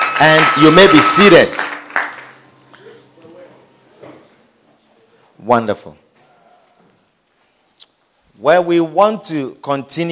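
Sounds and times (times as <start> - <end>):
audience clapping hands: 0.0 - 2.7
speech: 0.2 - 1.7, 5.5 - 6.0, 8.4 - 10.1.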